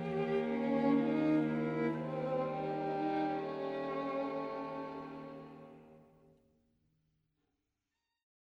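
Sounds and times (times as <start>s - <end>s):
string quartet: 0.0s - 6.2s.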